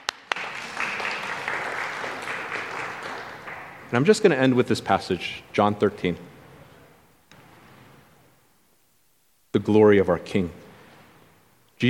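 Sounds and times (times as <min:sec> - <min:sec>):
applause: 0:00.0 - 0:04.2
speech: 0:03.9 - 0:06.3, 0:09.6 - 0:10.6.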